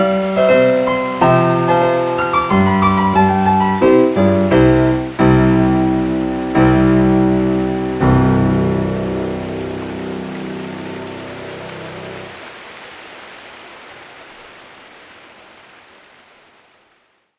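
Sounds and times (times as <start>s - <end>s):
piano: 0.0s - 12.4s.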